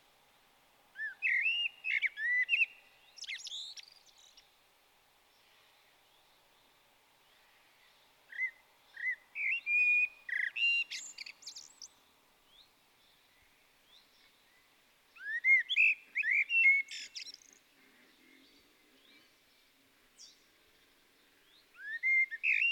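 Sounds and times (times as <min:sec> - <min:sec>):
common blackbird singing: 0:01.0 - 0:04.5, 0:07.3 - 0:19.3, 0:21.4 - 0:22.6.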